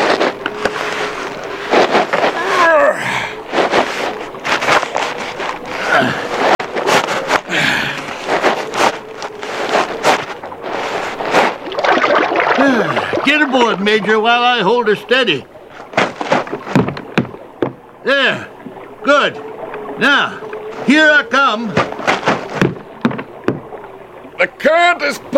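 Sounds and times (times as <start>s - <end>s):
raft sliding into river water: 0.0s - 24.6s
speech: 13.8s - 15.5s, 19.1s - 21.9s, 24.4s - 25.3s.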